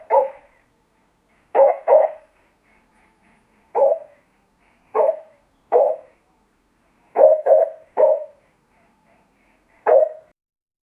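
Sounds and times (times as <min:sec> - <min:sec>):
pet dog barking: 0:00.0 - 0:00.5, 0:01.5 - 0:02.3, 0:03.7 - 0:04.2, 0:04.9 - 0:06.2, 0:07.2 - 0:08.4, 0:09.8 - 0:10.3.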